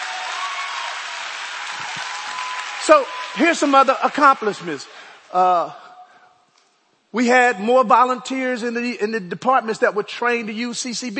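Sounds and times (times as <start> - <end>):
church congregation clapping for its executive pastors: 0.0 - 5.3
speech: 2.9 - 5.8, 7.1 - 11.1.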